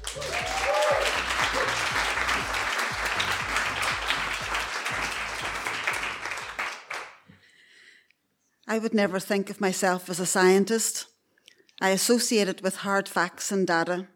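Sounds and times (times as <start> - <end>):
audience applause welcoming a storyteller: 0.0 - 7.2
speech: 8.7 - 11.1, 11.8 - 14.1.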